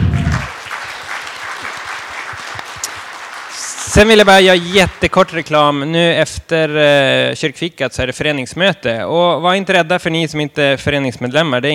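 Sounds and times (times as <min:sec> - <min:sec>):
audience applause: 0:00.0 - 0:05.5
speech: 0:04.0 - 0:11.7.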